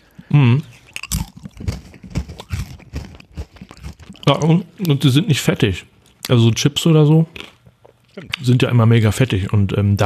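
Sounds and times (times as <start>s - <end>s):
spelt crackers crunched and chewed: 0.6s - 5.1s, 7.3s - 8.6s
speech: 4.3s - 7.5s, 8.2s - 10.0s.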